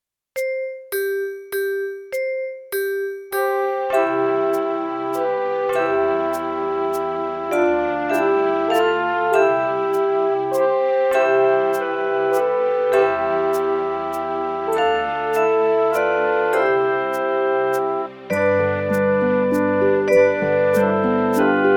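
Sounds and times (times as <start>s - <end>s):
autumn bells: 0.4s - 21.7s.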